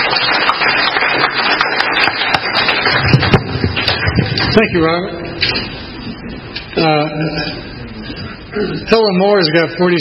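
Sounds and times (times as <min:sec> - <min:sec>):
audience round of applause: 0:00.0 - 0:04.8
speech: 0:04.6 - 0:05.8, 0:06.8 - 0:07.7, 0:08.5 - 0:09.9.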